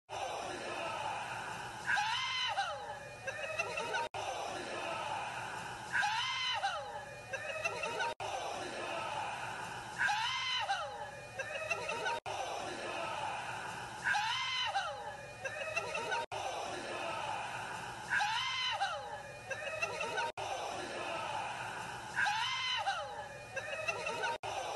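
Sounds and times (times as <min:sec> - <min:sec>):
laughter: 0:00.2 - 0:24.7
person whooping: 0:01.9 - 0:03.0, 0:05.9 - 0:07.1, 0:10.0 - 0:11.1, 0:14.0 - 0:15.1, 0:18.1 - 0:19.2, 0:22.2 - 0:24.4.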